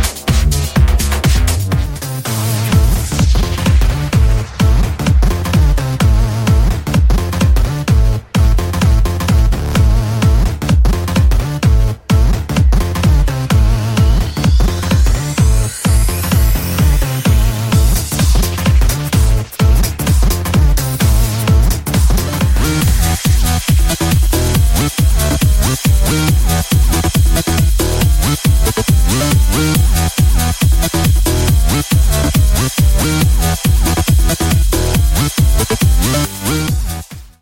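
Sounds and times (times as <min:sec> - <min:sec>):
deep house music sample: 0:00.0 - 0:37.3.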